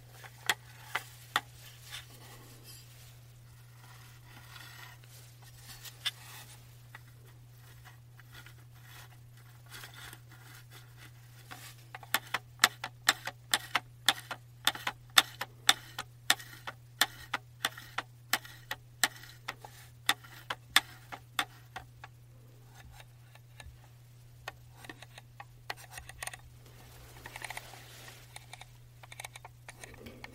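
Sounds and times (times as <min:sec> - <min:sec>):
steady low hum: 0:00.0 - 0:30.3
trackball mouse clicking: 0:12.0 - 0:23.8, 0:24.4 - 0:26.4, 0:28.3 - 0:30.3.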